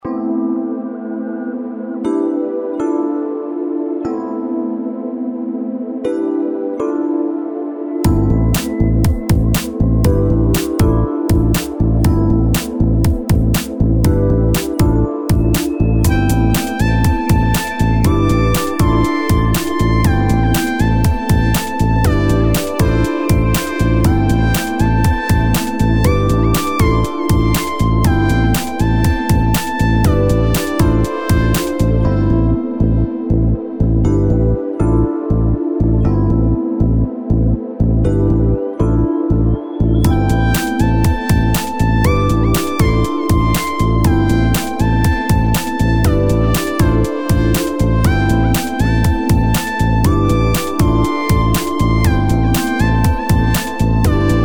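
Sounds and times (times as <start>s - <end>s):
chill music: 0.0s - 54.4s.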